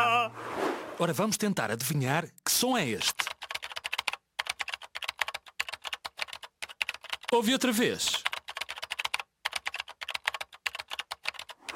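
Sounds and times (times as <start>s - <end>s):
speech: 1.0s - 3.3s, 7.3s - 8.3s
rapid typing on a computer keyboard: 3.1s - 7.4s, 8.1s - 11.7s.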